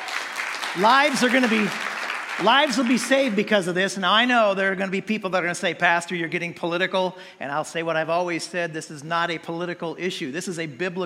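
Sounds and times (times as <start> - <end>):
congregation clapping in a church service: 0.0 - 3.5
speech: 0.7 - 11.0.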